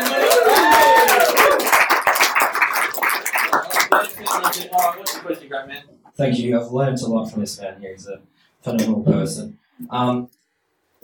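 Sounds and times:
audience clapping to welcome a guest: 0.0 - 5.4
speech: 5.6 - 10.4.

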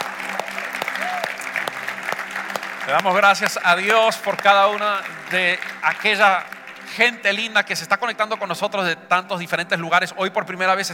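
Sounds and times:
audience applause: 0.0 - 8.6
speech: 2.9 - 10.9.

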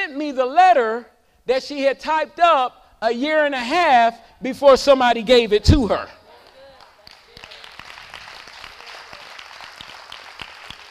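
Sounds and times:
speech: 0.1 - 6.2
audience clapping: 6.4 - 10.8.

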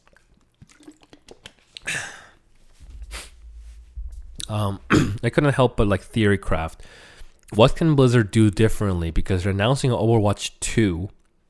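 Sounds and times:
person chugging a drink of water: 0.0 - 3.4
speech: 1.9 - 2.2, 4.5 - 11.2.

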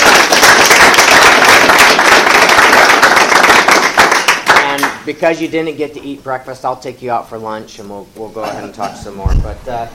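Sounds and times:
crowd applause: 0.0 - 5.0
speech: 5.1 - 9.9.

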